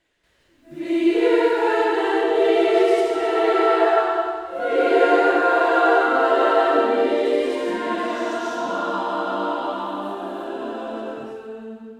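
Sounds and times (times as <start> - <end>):
concert choir singing tutti: 0.6 - 11.9.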